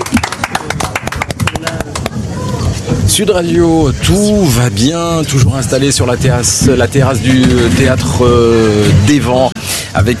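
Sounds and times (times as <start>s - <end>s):
applause: 0.0s - 2.3s
speech: 3.1s - 10.1s.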